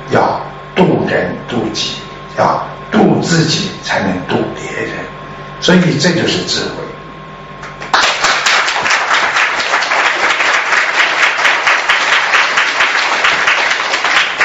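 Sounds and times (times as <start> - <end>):
speech: 0.1 - 6.8
audience clapping: 7.6 - 14.4.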